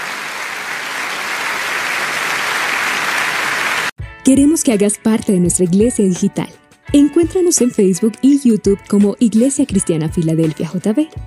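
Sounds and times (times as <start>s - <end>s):
audience applause: 0.0s - 3.9s
speech: 4.3s - 11.2s.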